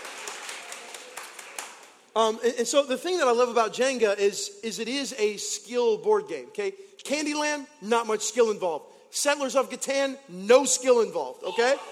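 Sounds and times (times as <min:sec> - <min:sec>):
audience clapping: 0:00.0 - 0:02.1
speech: 0:02.1 - 0:11.8.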